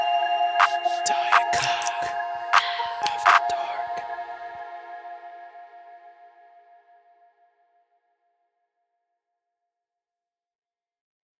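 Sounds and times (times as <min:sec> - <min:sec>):
coke beat: 0:00.0 - 0:04.8.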